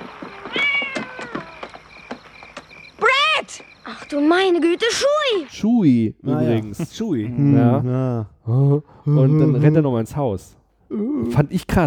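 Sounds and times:
cat meowing: 0.0s - 1.7s
speech: 4.1s - 11.8s.

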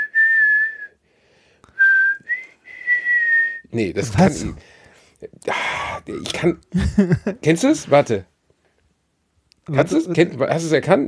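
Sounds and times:
person whistling a classical tune: 0.0s - 0.9s, 1.8s - 3.7s
speech: 3.7s - 8.3s, 9.7s - 11.0s
laughter: 6.7s - 7.4s.

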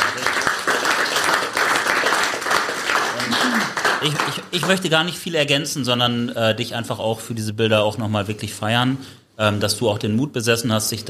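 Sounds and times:
crowd applause: 0.0s - 4.9s
speech: 4.0s - 11.0s.

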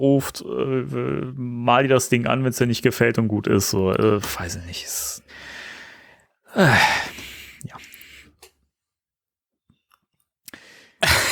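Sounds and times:
speech: 0.0s - 5.6s, 6.5s - 7.8s
breath: 5.3s - 8.4s, 10.5s - 11.0s
yawn: 6.5s - 8.0s.

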